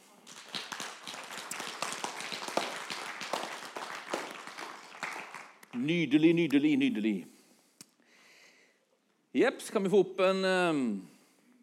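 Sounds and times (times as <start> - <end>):
audience applause: 0.0 - 5.7
speech: 5.8 - 7.4, 9.3 - 11.1.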